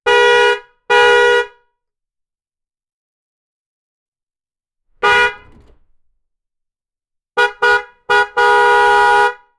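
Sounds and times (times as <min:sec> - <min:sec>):
extremely brief truck horn: 0:00.0 - 0:01.6, 0:05.0 - 0:05.9, 0:07.4 - 0:09.5.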